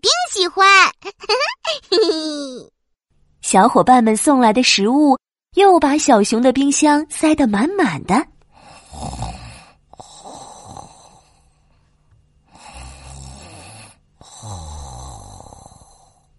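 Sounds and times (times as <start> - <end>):
speech: 0.0 - 1.3, 3.5 - 8.3
snoring: 8.5 - 11.6, 12.4 - 16.3.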